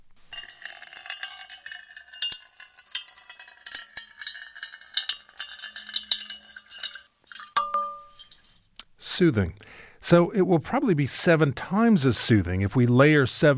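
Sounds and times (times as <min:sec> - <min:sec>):
water pouring into a metal bowl: 0:00.3 - 0:08.6
metallic clinks: 0:00.3 - 0:08.7
speech: 0:09.2 - 0:13.5.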